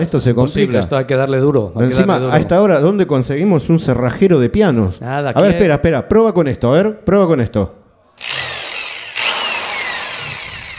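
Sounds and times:
speech: 0.0 - 7.8
power drill running: 8.2 - 10.7.

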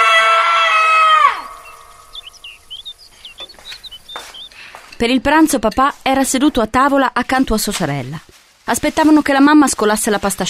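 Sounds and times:
man screaming in terror: 0.0 - 1.6
faint bird chirps: 1.1 - 4.9
speech: 5.0 - 10.4.

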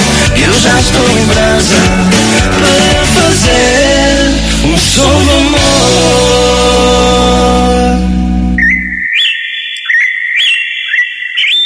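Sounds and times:
music: 0.0 - 8.6
bird chirping: 8.6 - 11.6.

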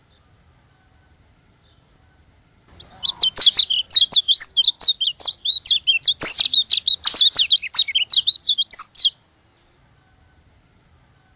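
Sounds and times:
white-eye song: 2.7 - 9.2.

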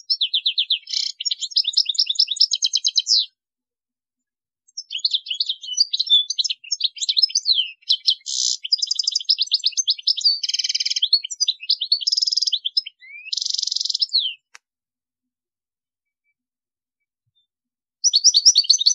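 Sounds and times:
European goldfinch song: 0.0 - 3.4, 4.7 - 14.6, 17.2 - 18.9.

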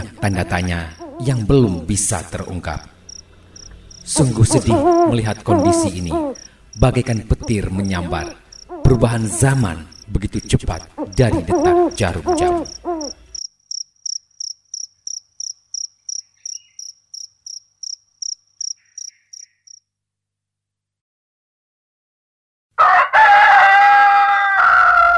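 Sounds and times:
speech: 0.0 - 2.9, 4.1 - 13.2
rooster crowing: 22.8 - 25.1.

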